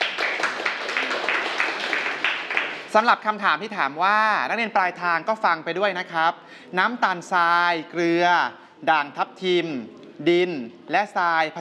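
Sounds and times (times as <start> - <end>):
students clapping: 0.0 - 2.9
speech: 2.9 - 11.6.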